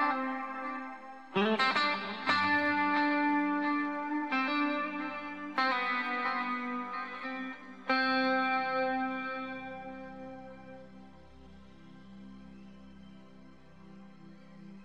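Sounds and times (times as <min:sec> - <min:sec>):
isolated guitar solo: 0:00.0 - 0:10.9.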